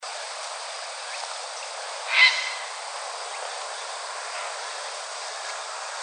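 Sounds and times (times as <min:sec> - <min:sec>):
background hiss: 0:00.0 - 0:06.0
grey heron harsh squawk: 0:02.1 - 0:02.7.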